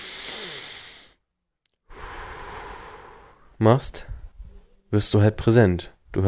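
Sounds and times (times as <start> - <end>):
deep breath in and out: 0.0 - 1.2, 1.9 - 3.6
speech: 3.6 - 4.1, 4.9 - 6.2.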